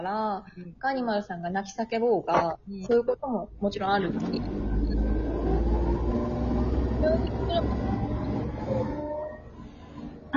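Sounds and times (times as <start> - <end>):
speech: 0.0 - 4.7, 7.0 - 8.0
F1 car driving past: 4.0 - 10.3.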